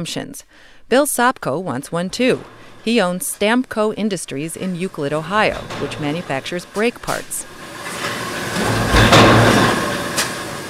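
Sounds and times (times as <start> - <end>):
speech: 0.0 - 7.5
stamping press forming flat steel discs into brake drums: 2.1 - 3.5, 4.7 - 10.6.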